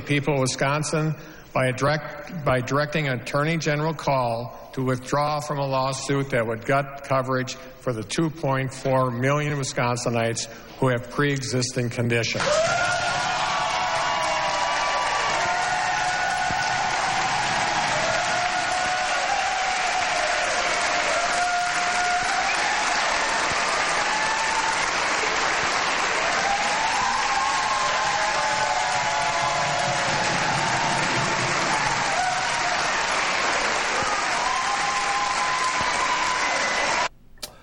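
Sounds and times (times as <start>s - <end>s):
speech: 0.1s - 13.2s
audience applause after speech line: 12.4s - 37.1s.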